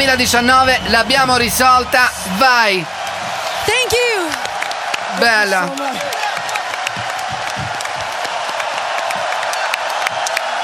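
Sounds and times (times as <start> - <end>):
speech: 0.0 - 3.0, 3.7 - 4.4, 5.1 - 6.3
crowd applause: 0.0 - 10.6
crowd cheers and whoops: 2.4 - 10.6.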